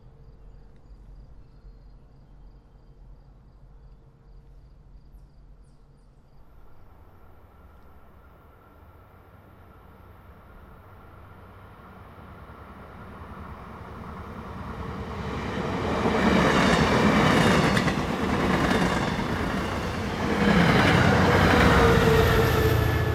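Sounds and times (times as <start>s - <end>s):
MBTA trains: 6.4s - 23.1s.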